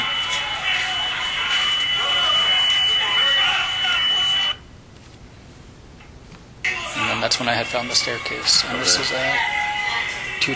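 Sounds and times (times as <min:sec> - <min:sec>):
alarm ringing: 0:00.0 - 0:04.6
speech: 0:07.3 - 0:10.5.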